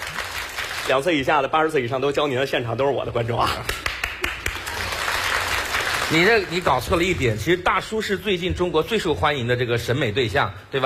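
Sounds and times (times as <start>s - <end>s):
audience applause at a live studio show: 0.0s - 1.2s, 3.7s - 6.8s
speech: 0.9s - 3.8s, 6.1s - 10.8s.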